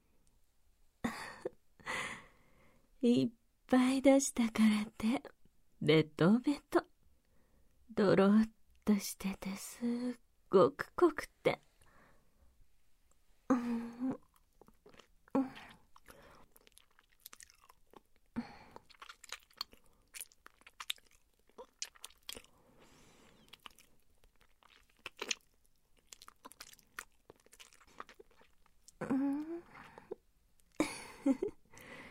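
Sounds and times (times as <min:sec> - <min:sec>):
speech: 0:03.0 - 0:06.9, 0:07.9 - 0:11.7
person tasting food, chewing and crunching: 0:14.2 - 0:31.4.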